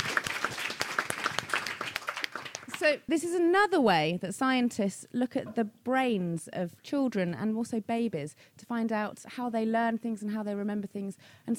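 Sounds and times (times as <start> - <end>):
audience applause for a child after a brainwave demonstration: 0.0 - 2.8
speech: 2.8 - 11.5.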